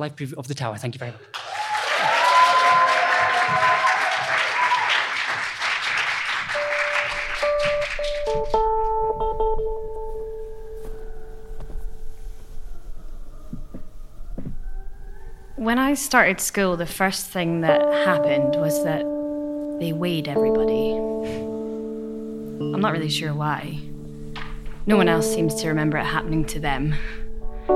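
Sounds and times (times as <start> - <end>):
speech: 0.0 - 1.5, 16.0 - 19.2, 19.8 - 21.4, 22.8 - 23.9, 24.8 - 27.2
crowd clapping: 1.3 - 9.0
soft sustained musical tones: 6.5 - 14.2, 15.6 - 27.7.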